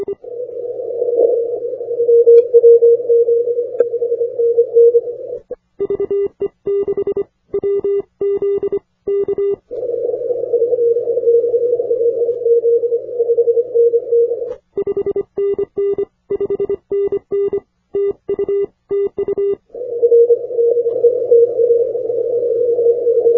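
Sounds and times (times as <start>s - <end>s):
80m band CW morse code tones: 1.2s - 9.6s, 10.7s - 23.3s.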